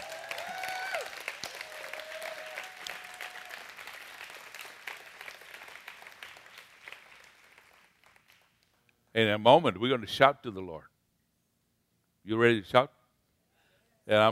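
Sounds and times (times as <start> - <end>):
audience clapping: 0.0 - 8.9
speech: 9.2 - 10.9, 12.2 - 13.0, 14.1 - 14.2.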